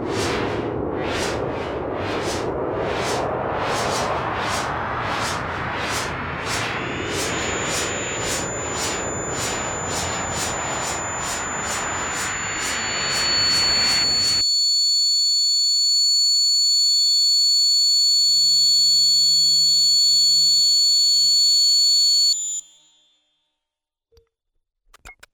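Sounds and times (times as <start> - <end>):
noise: 0.2 - 14.4.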